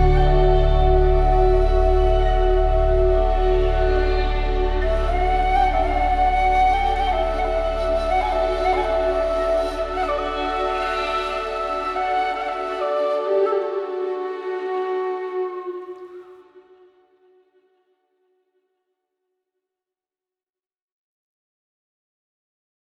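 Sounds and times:
Asian Zen spa meditation music: 0.0s - 17.3s.

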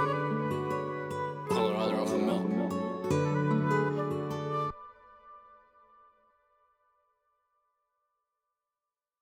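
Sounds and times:
sad ocean-themed music: 0.0s - 5.4s.

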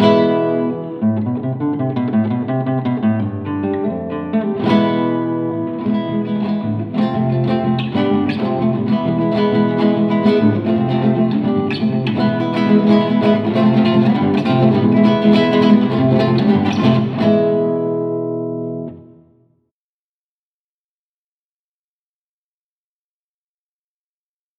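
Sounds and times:
classical guitar: 0.0s - 19.5s.

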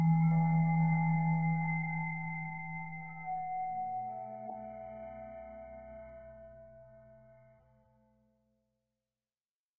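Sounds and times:
528 Hz tone: 0.0s - 6.5s.

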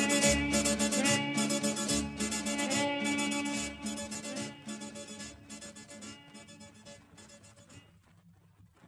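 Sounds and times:
harmonica orchestra playing: 0.0s - 6.8s.

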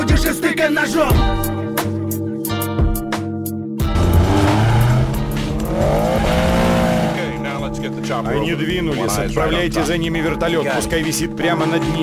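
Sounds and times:
speech: 0.2s - 1.5s, 7.9s - 12.0s
brief percussive rhythm: 1.1s - 12.0s
car engine roaring and revving as the vehicle launches: 3.8s - 7.8s
sustained rising squeal of tires: 3.9s - 7.4s.

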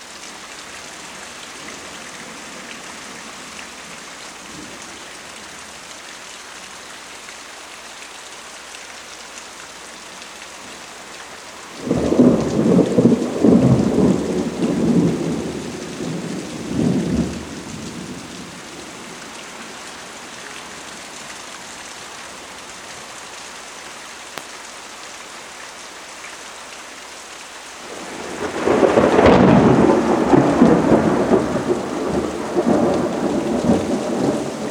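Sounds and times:
rain: 0.0s - 34.7s
frequent heavy thunder: 11.7s - 19.2s, 27.9s - 34.7s.

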